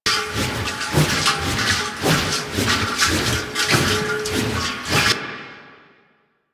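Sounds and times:
oil canister sound: 0.1 - 5.2.

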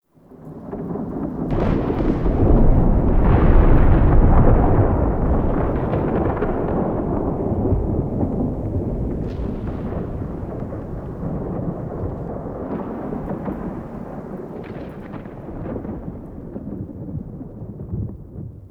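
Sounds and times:
exterior rolling thunder murmur: 0.3 - 18.6.

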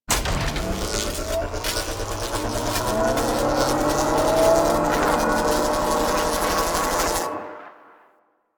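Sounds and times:
electric machine charging up: 0.1 - 7.6.

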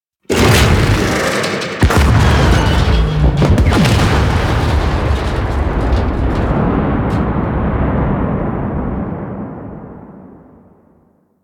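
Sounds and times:
thumper jumping: 0.3 - 7.9
thumper exploding: 0.3 - 11.3.

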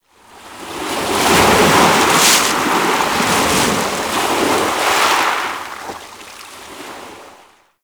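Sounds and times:
ocean wave crashing: 1.0 - 5.9.

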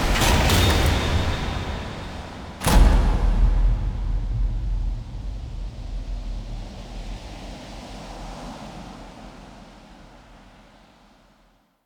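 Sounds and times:
fight start stinger: 0.1 - 6.7.

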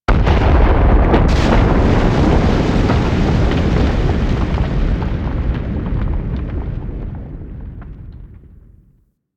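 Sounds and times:
coolant tower rumble: 0.1 - 8.8.

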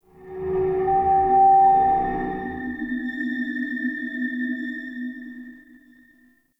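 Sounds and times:
psychedelic moan texture in a cave: 0.1 - 3.3.

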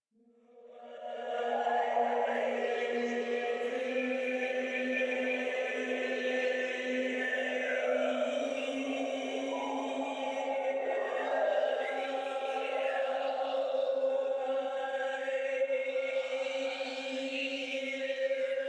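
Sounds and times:
choir singing: 0.7 - 18.6.

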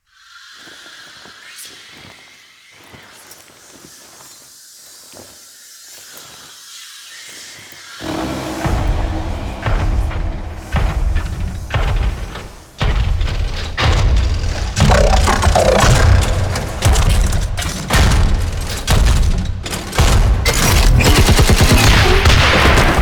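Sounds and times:
mech destruction: 8.0 - 22.9.

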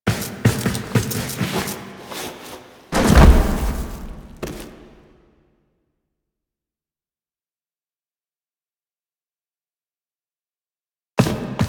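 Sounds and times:
foley sounds: 0.1 - 5.0.

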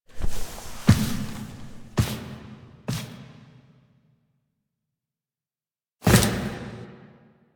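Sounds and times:
foley sounds: 0.1 - 2.0.

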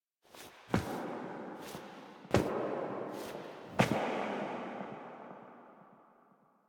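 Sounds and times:
operator footsteps foley: 0.3 - 4.0.

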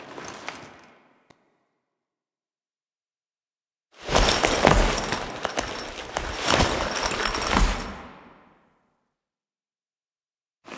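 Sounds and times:
foley sounds: 4.1 - 8.0.

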